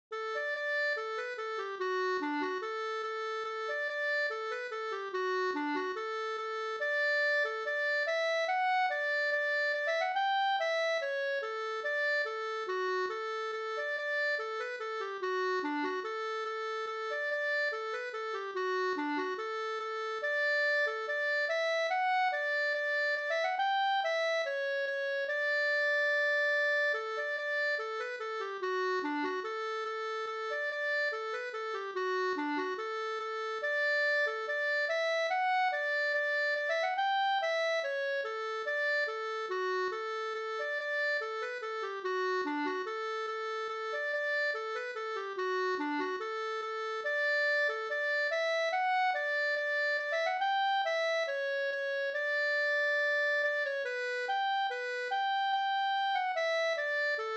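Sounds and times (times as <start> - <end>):
folk walking tune: 0.3 - 57.3.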